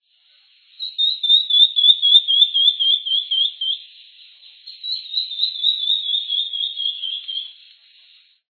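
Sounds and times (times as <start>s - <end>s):
rufous-breasted leaftosser song: 0.8s - 7.8s.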